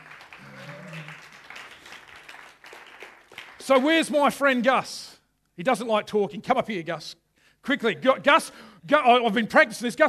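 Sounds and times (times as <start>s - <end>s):
church congregation applauding a returning member: 0.0s - 4.2s
speech: 3.7s - 10.0s.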